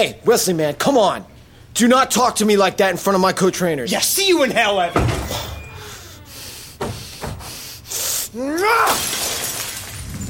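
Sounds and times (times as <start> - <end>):
speech: 0.0 - 5.5, 8.4 - 9.1
glass fishbowl smashing: 8.8 - 10.2.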